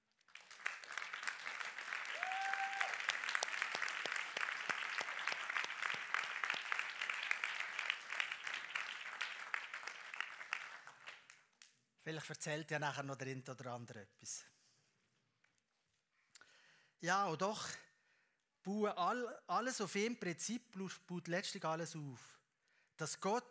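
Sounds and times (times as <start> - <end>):
crowd applause: 0.3 - 11.2
speech: 12.1 - 14.5, 17.0 - 17.8, 18.6 - 22.4, 23.0 - 23.5.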